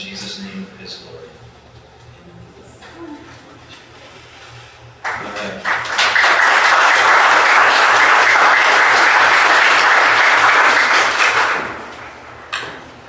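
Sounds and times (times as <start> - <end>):
loud dense applause: 5.0 - 12.3
slow clapping: 5.0 - 12.6.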